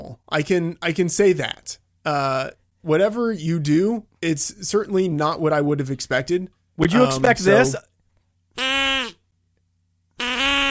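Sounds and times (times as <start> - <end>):
speech: 0.3 - 7.9
duck call being blown: 8.6 - 9.2, 10.2 - 10.7.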